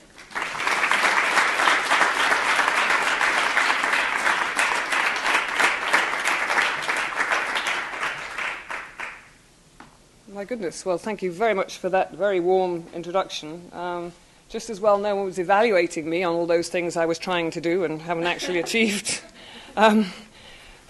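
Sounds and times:
audience applause welcoming a guest speaker at a Stanford lecture: 0.0s - 9.2s
speech: 10.5s - 20.2s
laughter: 18.2s - 19.4s.

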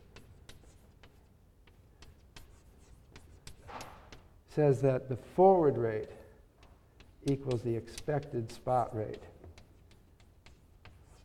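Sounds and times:
writing on a board during a lecture: 0.0s - 4.3s, 5.7s - 11.2s
speech: 4.6s - 6.2s, 7.2s - 9.3s.

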